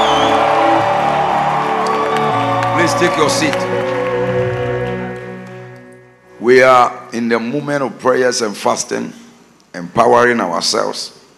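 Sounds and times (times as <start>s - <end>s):
audience shouting: 0.0s - 5.3s
audience clapping: 0.0s - 5.9s
speech: 2.9s - 3.9s, 6.4s - 9.2s, 9.8s - 11.2s.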